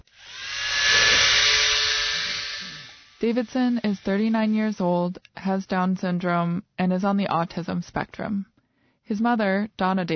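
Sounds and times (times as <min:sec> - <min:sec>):
electric shaver running: 0:00.0 - 0:04.9
speech: 0:03.2 - 0:08.5, 0:09.1 - 0:10.1.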